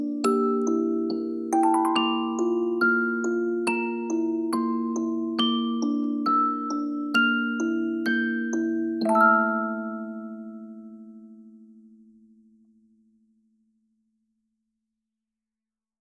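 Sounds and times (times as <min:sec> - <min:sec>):
video game music on a music box: 0:00.0 - 0:11.0.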